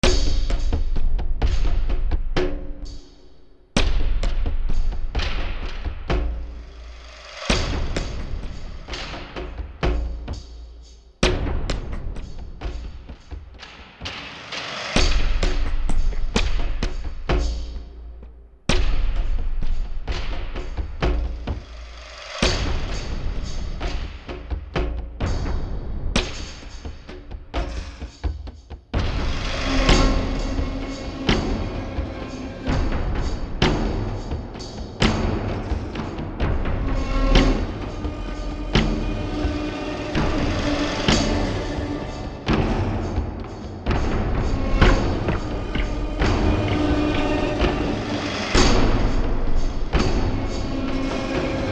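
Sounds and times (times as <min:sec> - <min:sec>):
rural battle percussion loop: 0:00.0 - 0:51.7.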